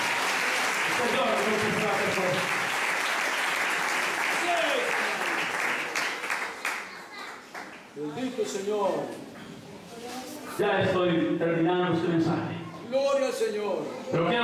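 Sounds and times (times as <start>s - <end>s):
audience applauding: 0.0s - 7.9s
speech: 8.0s - 9.2s, 10.6s - 14.4s.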